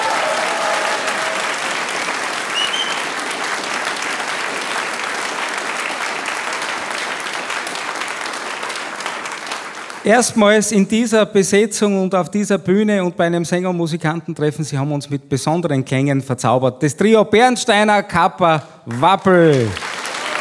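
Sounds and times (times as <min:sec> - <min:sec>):
sustained audience applause: 0:00.0 - 0:10.3, 0:18.9 - 0:20.3
speech: 0:10.1 - 0:19.8.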